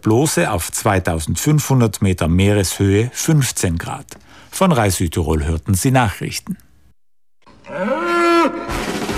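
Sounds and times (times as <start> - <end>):
speech: 0.0 - 6.6
bull mooing: 7.5 - 9.0.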